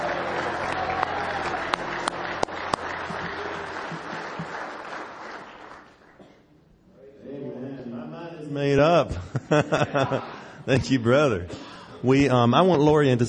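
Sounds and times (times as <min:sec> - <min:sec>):
laughter: 0:00.0 - 0:04.8, 0:09.0 - 0:11.1
audience clapping hands: 0:00.0 - 0:06.4
speech: 0:08.6 - 0:13.2.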